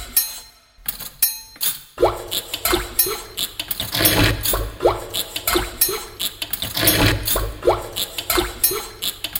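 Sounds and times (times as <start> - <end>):
home-made music beat: 2.0 - 3.6, 4.5 - 6.3, 7.3 - 9.3.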